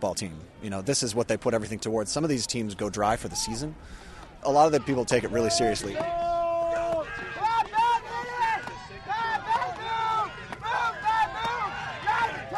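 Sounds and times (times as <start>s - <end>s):
speech: 0.0s - 6.3s
woodsmen team cheering during horizontal wood chop: 4.5s - 12.5s.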